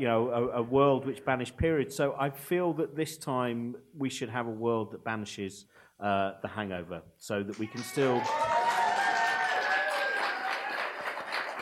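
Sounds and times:
speech: 0.0 - 8.5
audience clapping: 7.5 - 11.5.

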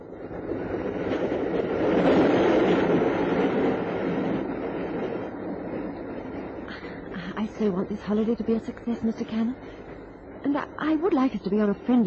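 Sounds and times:
train running on rails: 0.0 - 12.0
speech: 7.6 - 12.0.

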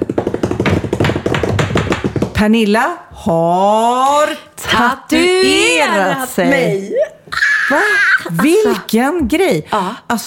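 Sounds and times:
drum roll tapped by hand on a surface: 0.0 - 2.4
speech: 2.4 - 10.2.

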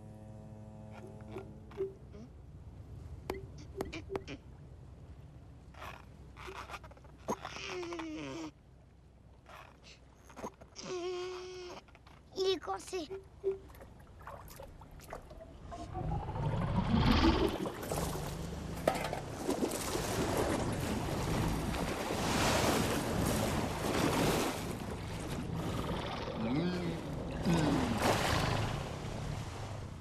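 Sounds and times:
soft tonal sounds: 0.0 - 8.5, 10.3 - 19.3
ocean waves surging and washing: 13.0 - 29.9.

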